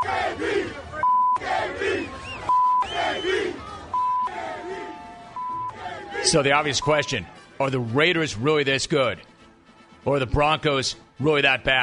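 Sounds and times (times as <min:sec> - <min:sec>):
stadium crowd chanting: 0:00.0 - 0:07.4
speech: 0:06.3 - 0:09.3, 0:10.0 - 0:11.8.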